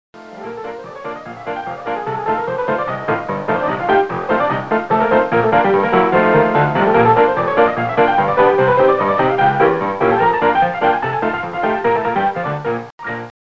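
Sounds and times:
ragtime music: 0:00.2 - 0:13.3.

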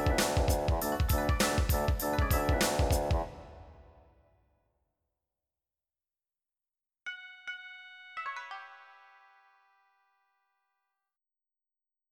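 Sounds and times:
funk music: 0:00.0 - 0:04.0.

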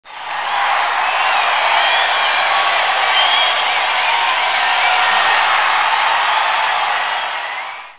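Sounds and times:
people cheering: 0:00.0 - 0:07.9.

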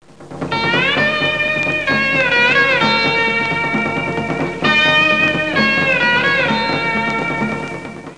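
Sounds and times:
dance music: 0:00.2 - 0:08.1.

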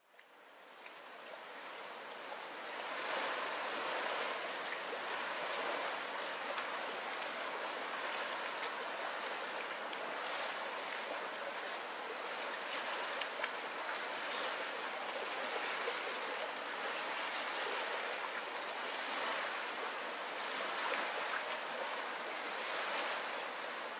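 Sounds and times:
water: 0:00.0 - 0:23.9.

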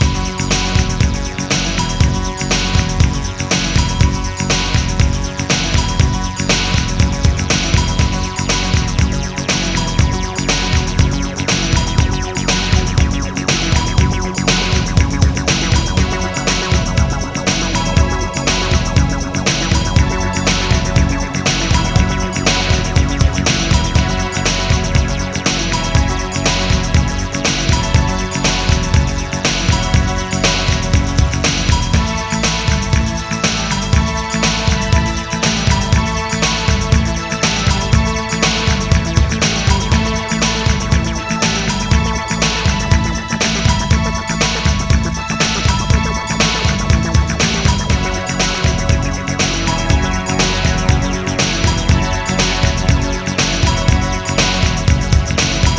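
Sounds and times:
groove music: 0:00.0 - 0:55.7.

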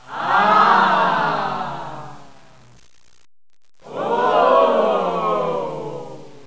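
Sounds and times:
crowd oohing and aahing: 0:00.0 - 0:02.3, 0:03.8 - 0:06.4.

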